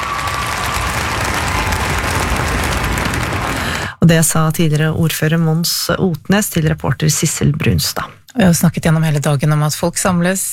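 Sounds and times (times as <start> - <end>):
large audience applause at statue unveiling: 0.0 - 4.0
speech: 4.1 - 10.5.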